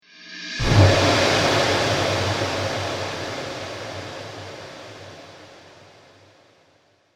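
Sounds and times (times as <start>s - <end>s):
cinematic strike trailer sound effect: 0.6s - 5.9s.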